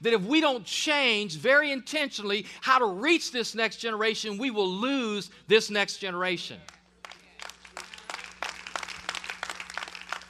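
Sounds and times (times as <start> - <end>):
speech: 0.0 - 6.8
audience clapping: 6.7 - 10.2.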